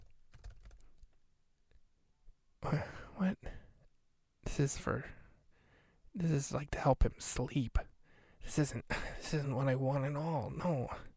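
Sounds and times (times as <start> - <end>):
typing on a computer keyboard: 0.0 - 1.1
speech: 2.6 - 3.5, 4.6 - 5.2, 6.2 - 7.8, 8.4 - 11.1.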